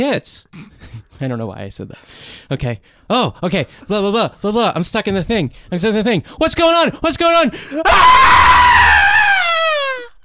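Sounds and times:
speech: 0.0 - 9.0
person screaming playacted: 7.8 - 10.2.

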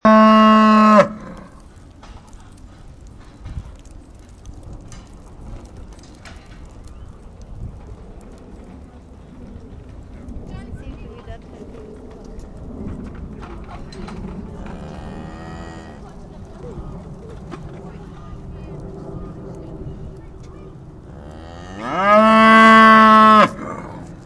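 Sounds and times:
cow mooing: 0.0 - 1.5, 21.1 - 24.0.

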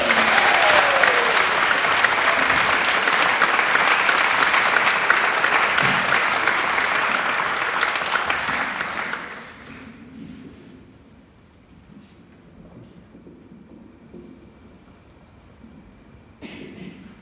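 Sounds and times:
audience applause: 0.0 - 10.0.

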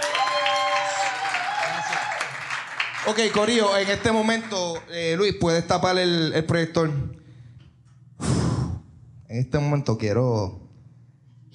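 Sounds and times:
audience applause: 0.0 - 4.9
speech: 3.1 - 7.2, 9.3 - 10.6.

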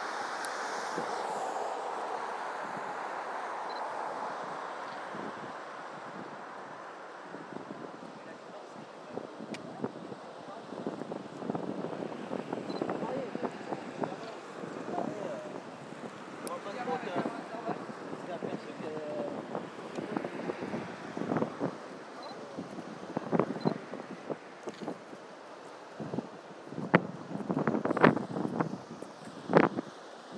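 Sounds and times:
river water surging through bridge piers: 0.0 - 30.3
faint indistinct voices: 7.2 - 24.0.

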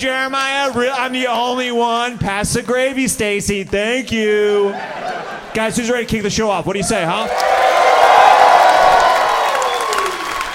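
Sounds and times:
speech: 0.0 - 7.8
laughter: 4.4 - 6.1
audience cheering: 6.8 - 10.5.

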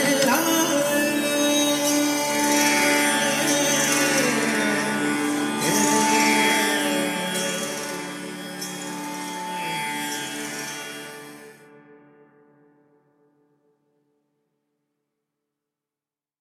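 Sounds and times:
fast Indian classical raga music: 0.0 - 11.6.

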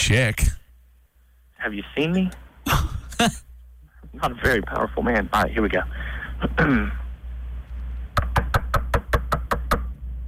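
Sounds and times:
speech: 0.1 - 0.6, 1.6 - 3.5, 4.1 - 7.0
knocking on a door: 8.2 - 9.9.

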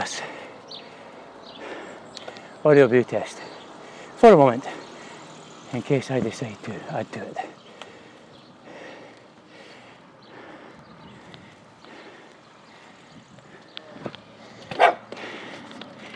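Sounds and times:
speech: 2.6 - 3.4, 4.2 - 4.7, 5.7 - 7.6
dog yelp: 14.7 - 15.0
dogs barking in greeting: 14.7 - 15.1.

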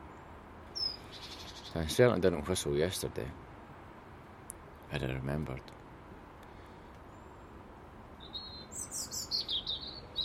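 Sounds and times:
bird singing in the morning: 0.0 - 2.1, 8.2 - 10.2
speech: 1.7 - 3.4, 4.9 - 5.8.

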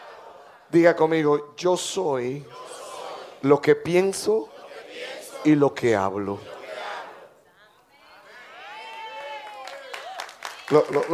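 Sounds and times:
crowd calling and cheering: 0.0 - 1.0, 2.4 - 11.1
speech: 0.7 - 2.7, 3.4 - 6.6, 10.7 - 11.1
audience clapping: 8.7 - 11.1.

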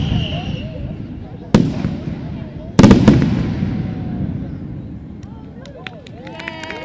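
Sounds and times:
fireworks: 0.0 - 5.4.

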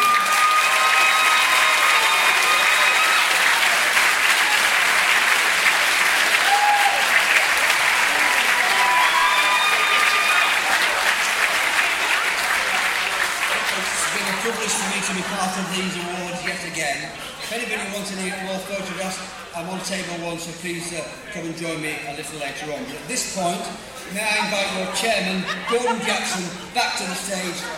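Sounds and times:
audience applause: 0.0 - 16.8
laughter: 12.6 - 18.0, 24.0 - 27.7
speech: 15.7 - 27.7.

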